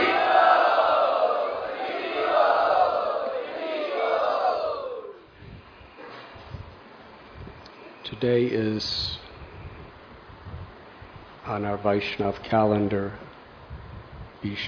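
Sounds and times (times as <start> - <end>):
crowd chanting in unison at a Vaishnav gathering: 0.0 - 5.3
murmur of voices: 0.0 - 5.4
speech: 8.2 - 9.2, 11.5 - 13.2, 14.4 - 14.6.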